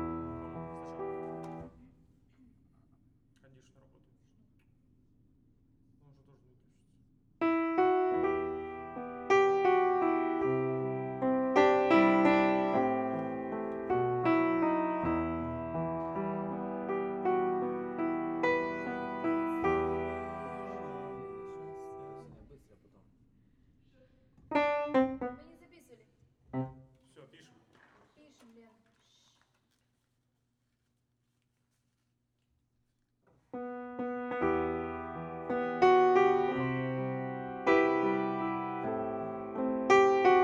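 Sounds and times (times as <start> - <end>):
piano: 0.0 - 1.8, 7.4 - 22.4, 24.4 - 25.7, 26.5 - 27.0, 33.5 - 40.4.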